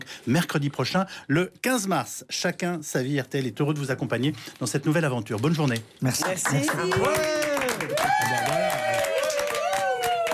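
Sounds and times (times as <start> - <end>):
speech: 0.1 - 9.1
studio audience applause: 6.2 - 10.3.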